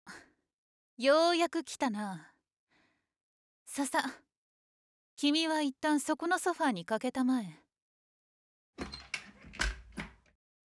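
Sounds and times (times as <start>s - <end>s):
speech: 1.0s - 2.3s, 3.7s - 4.3s, 5.2s - 7.6s
key locking a door lock: 8.8s - 10.2s.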